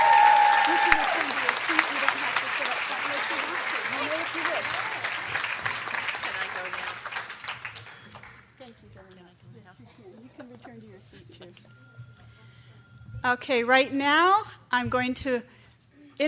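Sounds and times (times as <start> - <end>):
crowd applause: 0.0 - 8.5
speech: 13.3 - 15.6.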